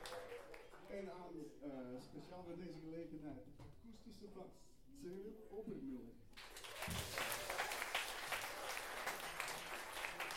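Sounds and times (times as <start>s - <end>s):
audience applause: 0.0s - 0.9s, 6.4s - 10.3s
speech: 0.9s - 7.2s.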